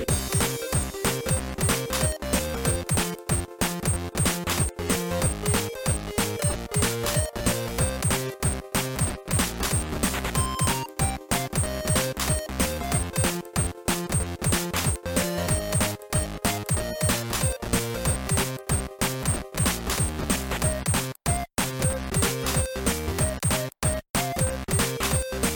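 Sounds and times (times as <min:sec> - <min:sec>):
instrumental music: 0:00.1 - 0:25.5.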